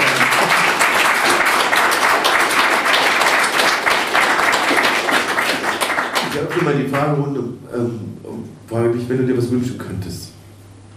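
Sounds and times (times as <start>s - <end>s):
audience applause: 0.0s - 7.2s
speech: 6.6s - 10.3s.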